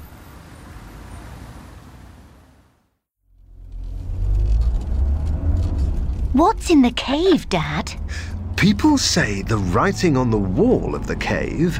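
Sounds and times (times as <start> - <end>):
steady traffic rumble: 0.0 - 11.7
taxi car pulling up with deep engine growl: 3.3 - 11.7
speech: 6.4 - 11.7.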